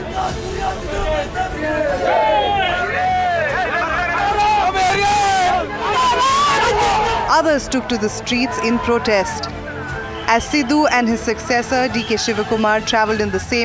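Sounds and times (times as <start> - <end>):
crowd of upset political supporters shouting and crying: 0.0 - 13.6
speech: 0.2 - 2.3, 7.3 - 9.6, 10.3 - 13.6
high-pitched wails: 2.0 - 10.8.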